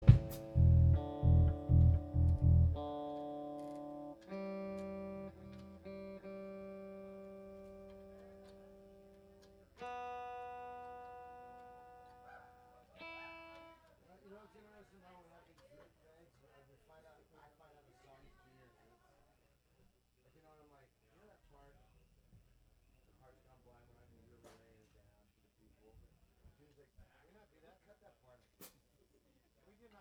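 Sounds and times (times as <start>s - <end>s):
instrument tuning: 0.0s - 13.8s.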